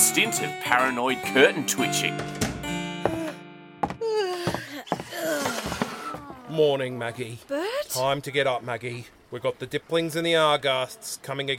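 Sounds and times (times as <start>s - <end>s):
speech: 0.2s - 2.5s, 6.6s - 11.5s
moaning yawn: 4.0s - 7.8s.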